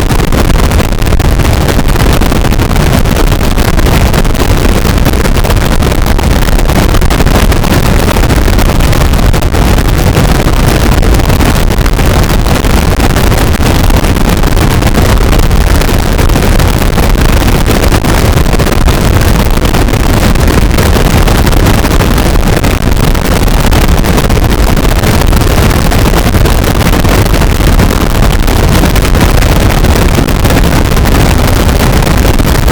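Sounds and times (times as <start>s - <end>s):
harsh noise becoming white noise: 0.0s - 32.6s.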